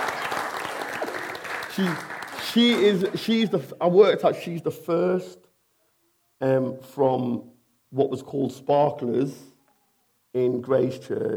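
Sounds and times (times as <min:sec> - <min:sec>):
round of applause: 0:00.0 - 0:03.5
speech: 0:01.8 - 0:05.4, 0:06.4 - 0:09.5, 0:10.3 - 0:11.3.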